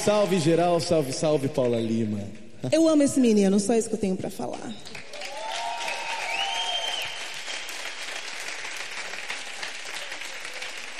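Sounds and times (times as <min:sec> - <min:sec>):
audience applause: 0:00.0 - 0:02.2, 0:05.0 - 0:10.9
speech: 0:00.0 - 0:05.0.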